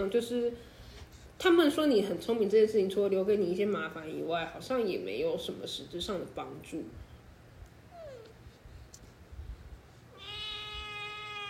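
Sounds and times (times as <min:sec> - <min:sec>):
speech: 0:00.0 - 0:00.8, 0:01.4 - 0:07.0
cat meowing: 0:10.1 - 0:11.4.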